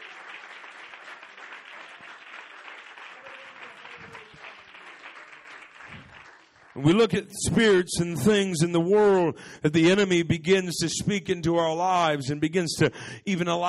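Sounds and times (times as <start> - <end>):
hands clapping: 0.0 - 7.7
speech: 6.8 - 13.6.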